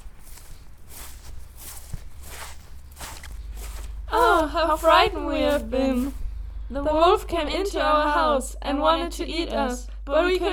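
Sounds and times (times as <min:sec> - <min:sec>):
footsteps of two people approaching: 0:00.0 - 0:07.6
low rumble: 0:00.0 - 0:10.5
speech: 0:04.4 - 0:10.5.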